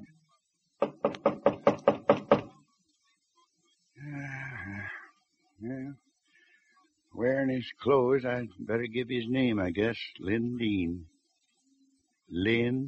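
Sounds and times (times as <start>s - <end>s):
knocking on a ranch house door: 0.8s - 2.6s
speech: 7.6s - 11.1s, 12.3s - 12.8s.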